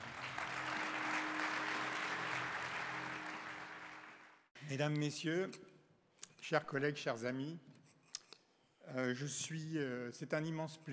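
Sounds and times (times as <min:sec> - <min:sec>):
audience applause: 0:00.0 - 0:04.5
speech: 0:04.7 - 0:05.7, 0:06.5 - 0:07.7, 0:08.9 - 0:10.9.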